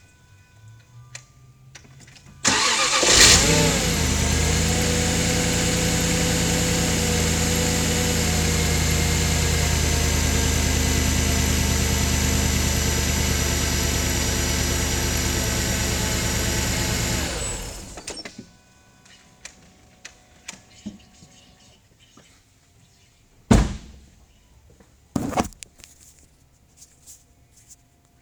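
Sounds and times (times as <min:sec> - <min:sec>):
XKR engine rough start: 0:02.4 - 0:18.3.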